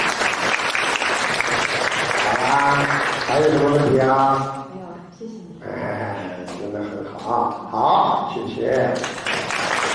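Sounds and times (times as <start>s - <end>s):
audience applause: 0.0s - 4.0s, 9.0s - 9.9s
speech: 2.8s - 4.6s, 7.3s - 9.2s.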